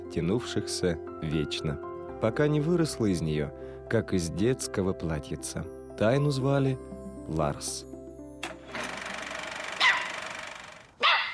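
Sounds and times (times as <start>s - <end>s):
speech: 0.1s - 7.9s
aggressive dog barking: 9.8s - 10.2s, 11.0s - 11.3s.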